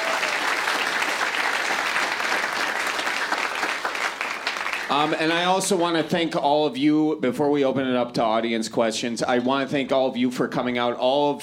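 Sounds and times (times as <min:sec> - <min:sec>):
audience applause: 0:00.0 - 0:05.5
speech: 0:04.9 - 0:11.4.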